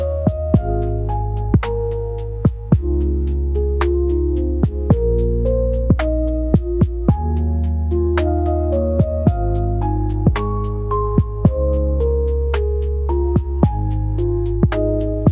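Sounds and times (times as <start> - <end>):
lo-fi chillout dreamscape melody loop: 0.0 - 15.3.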